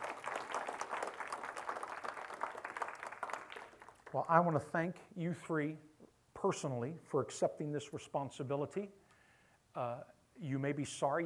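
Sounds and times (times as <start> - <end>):
audience hand clapping: 0.0 - 4.6
speech: 4.1 - 9.0, 9.8 - 11.2.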